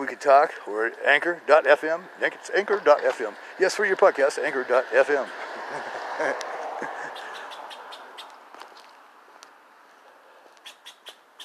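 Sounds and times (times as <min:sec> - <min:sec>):
speech: 0:00.0 - 0:07.2
squirrel barking: 0:07.1 - 0:08.4, 0:10.6 - 0:11.4.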